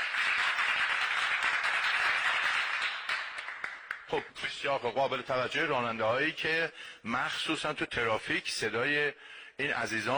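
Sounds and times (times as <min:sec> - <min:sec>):
audience applause: 0:00.0 - 0:04.1
speech: 0:04.1 - 0:10.1.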